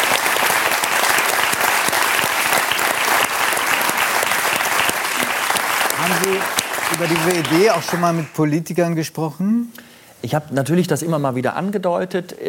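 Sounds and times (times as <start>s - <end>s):
audience applause: 0.0s - 8.5s
speech: 6.1s - 12.4s.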